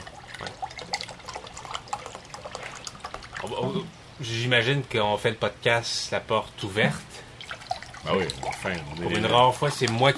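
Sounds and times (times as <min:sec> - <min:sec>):
water poured into a glass: 0:00.0 - 0:03.5, 0:07.4 - 0:10.1
speech: 0:03.6 - 0:07.1, 0:08.0 - 0:10.1.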